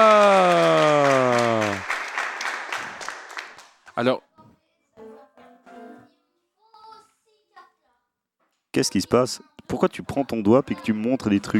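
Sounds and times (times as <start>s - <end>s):
crowd applause: 0.0s - 3.8s
speech: 4.0s - 4.3s, 8.7s - 11.5s.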